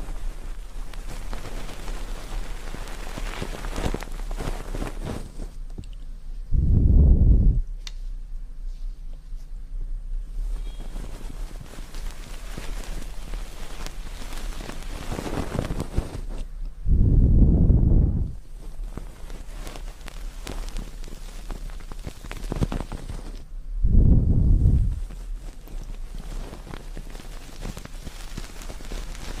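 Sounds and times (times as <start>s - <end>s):
ear cleaning water crackling and trickling: 0.0s - 6.3s, 10.4s - 16.5s, 18.4s - 23.5s, 24.8s - 29.3s
heavy low whooshes: 6.3s - 7.8s, 15.5s - 19.2s, 23.5s - 25.4s.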